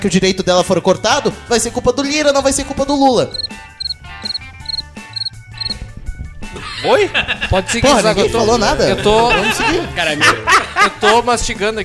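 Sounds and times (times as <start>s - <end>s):
speech: 0.0s - 3.7s, 6.8s - 11.8s
cricket chirping sound effect: 3.3s - 5.8s
laughter: 6.6s - 11.6s.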